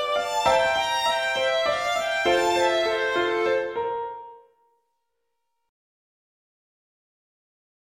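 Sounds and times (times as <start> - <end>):
slow melody in thirds: 0.0 - 4.6.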